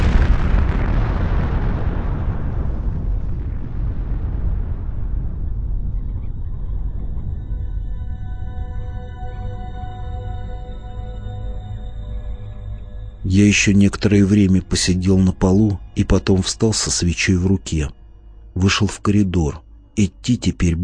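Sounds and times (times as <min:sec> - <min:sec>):
muffled explosion deep inside rock: 0:00.0 - 0:07.6
speech: 0:13.4 - 0:18.0, 0:18.6 - 0:20.8.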